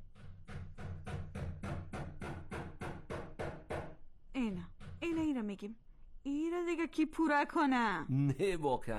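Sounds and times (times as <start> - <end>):
hammer striking a nail into a wall: 0.0 - 4.0
speech: 4.4 - 8.9.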